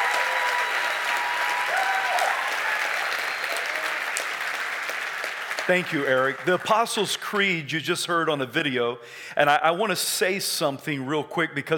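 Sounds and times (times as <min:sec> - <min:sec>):
audience applause: 0:00.0 - 0:07.2
speech: 0:05.7 - 0:11.7.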